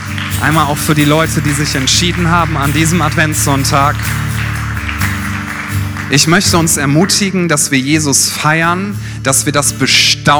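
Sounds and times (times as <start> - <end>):
audience applause: 0.0 - 7.3
speech: 0.4 - 4.3, 6.1 - 10.3.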